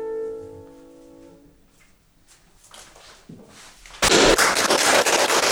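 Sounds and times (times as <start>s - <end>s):
echo: 4.1s - 5.4s.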